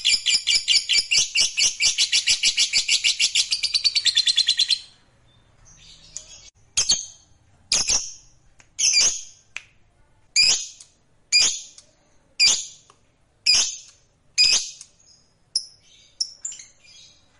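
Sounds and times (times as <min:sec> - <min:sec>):
fighter-type lovebird chirps: 0:00.0 - 0:09.4, 0:10.4 - 0:11.8, 0:12.4 - 0:17.3.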